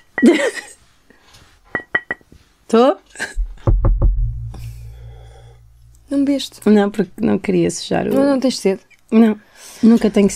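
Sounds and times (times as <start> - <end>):
speech: 0.2 - 0.7, 2.7 - 3.3, 6.3 - 10.3
glasses clinking in a toast: 1.7 - 2.3.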